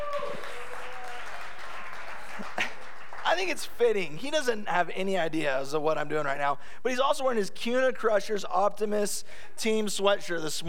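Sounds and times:
audience applause: 0.0s - 3.8s
speech: 3.4s - 10.6s.

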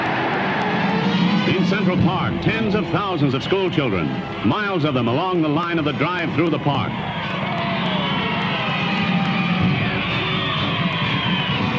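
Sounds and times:
large parade crowd cheering: 0.0s - 11.7s
speech: 1.7s - 7.5s
whoops: 7.0s - 11.7s.

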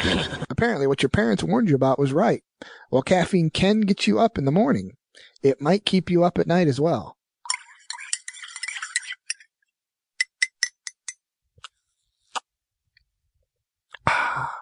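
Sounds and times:
speech: 0.0s - 7.2s
person sipping tea from a cup: 7.5s - 9.3s
cup being handled: 10.2s - 11.2s.

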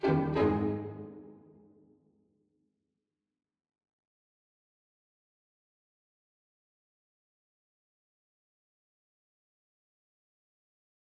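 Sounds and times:
string quartet playing pizzicato: 0.0s - 1.6s.

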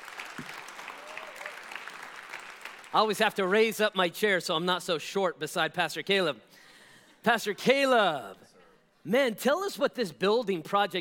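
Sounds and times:
audience applause: 0.0s - 2.9s
speech: 2.9s - 6.6s, 7.2s - 11.0s.

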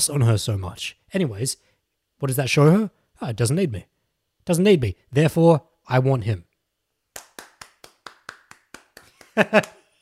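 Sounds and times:
speech: 0.0s - 6.5s, 9.4s - 9.8s
crisp hand claps: 7.1s - 10.0s.

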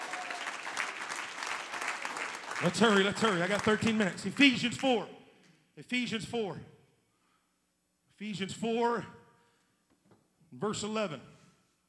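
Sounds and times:
audience clapping hands: 0.0s - 5.0s
speech: 2.6s - 5.2s, 5.8s - 6.7s, 8.2s - 9.2s, 10.5s - 11.3s.

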